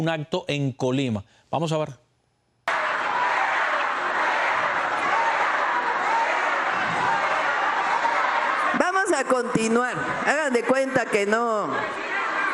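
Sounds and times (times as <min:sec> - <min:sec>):
speech: 0:00.0 - 0:02.0, 0:09.2 - 0:12.1
crowd shouting at a public event in Colima, Mexico: 0:02.7 - 0:12.5.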